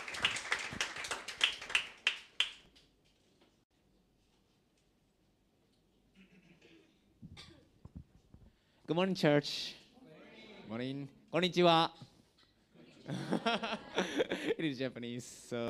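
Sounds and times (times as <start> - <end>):
audience applause: 0.0 - 2.5
speech: 8.9 - 9.8, 10.7 - 12.1, 13.1 - 15.6
laughter: 12.8 - 14.7.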